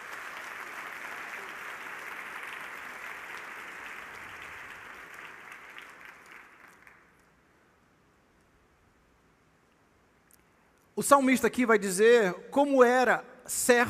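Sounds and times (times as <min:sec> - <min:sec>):
audience applause: 0:00.0 - 0:07.3
speech: 0:11.0 - 0:13.8.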